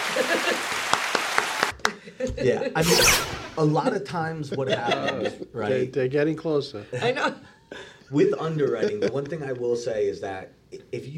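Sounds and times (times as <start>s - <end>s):
laughter: 0.0s - 0.8s, 3.6s - 5.6s
applause: 0.0s - 2.0s
speech: 0.2s - 0.8s, 2.2s - 11.1s.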